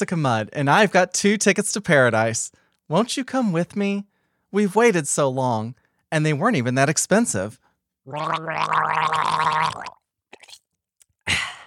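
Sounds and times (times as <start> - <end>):
speech: 0.0 - 10.0
person gargling: 8.1 - 10.6.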